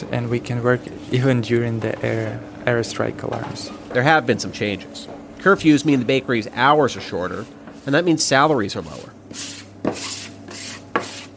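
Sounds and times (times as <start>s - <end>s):
speech: 0.0s - 9.6s
rolling out dough for Khachapuri in a bakery kitchen: 6.9s - 11.3s.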